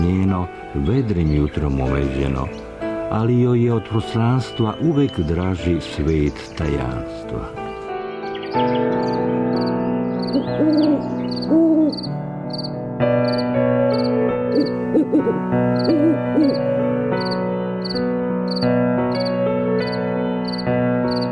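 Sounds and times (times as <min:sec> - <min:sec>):
speech: 0:00.4 - 0:07.6, 0:08.5 - 0:09.1
owl hooting: 0:09.6 - 0:21.3.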